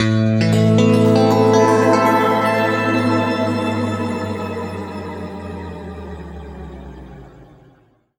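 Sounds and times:
guitar chords in A: 0:00.4 - 0:07.2.

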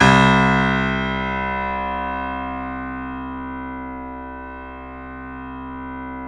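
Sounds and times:
piano C note in right channel: 0:00.0 - 0:06.2.

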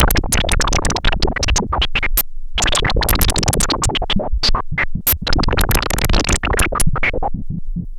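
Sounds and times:
pulsing filtered noise: 0:00.0 - 0:07.9.

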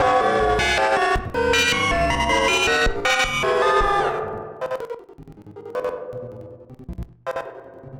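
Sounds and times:
battered synth: 0:00.0 - 0:04.0.

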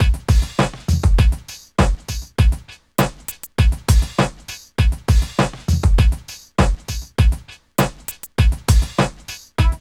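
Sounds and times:
drum loop: 0:00.0 - 0:09.7.

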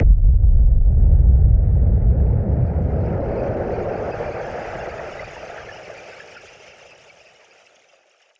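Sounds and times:
filtered noise bomb boom: 0:00.0 - 0:03.8.

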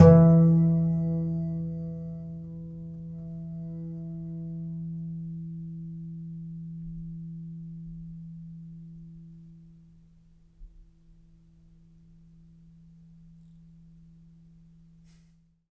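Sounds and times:
contrabass balalaika plucked: 0:00.0 - 0:05.1.

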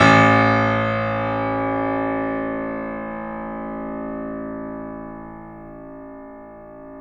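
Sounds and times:
piano: 0:00.0 - 0:07.0.

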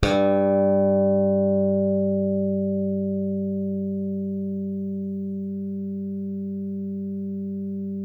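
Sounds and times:
slap electric bass: 0:00.0 - 0:08.0.

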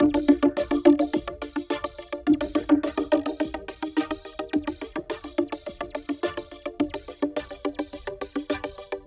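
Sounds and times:
synth arpeggio: 0:00.0 - 0:05.4.

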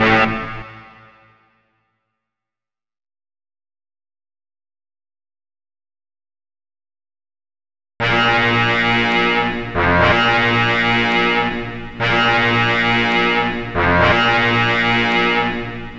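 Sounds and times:
dramatic horns: 0:00.0 - 0:01.6, 0:08.0 - 0:15.9.

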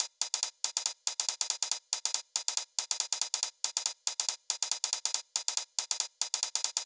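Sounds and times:
drum loop with hi-hat at 140 BPM: 0:00.0 - 0:06.8.

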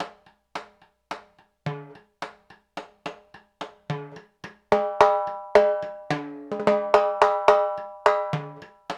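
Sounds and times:
danzon music: 0:03.9 - 0:08.9.

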